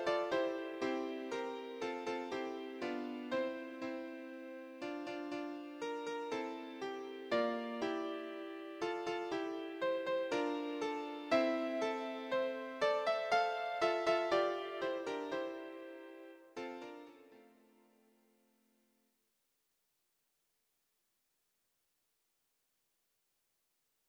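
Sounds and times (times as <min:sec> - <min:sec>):
piano: 0:00.0 - 0:17.6.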